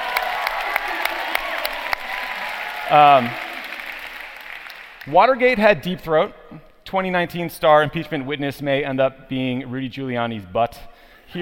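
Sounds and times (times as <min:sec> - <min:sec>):
audience applause: 0:00.0 - 0:05.2
speech: 0:02.9 - 0:03.4, 0:05.0 - 0:11.4.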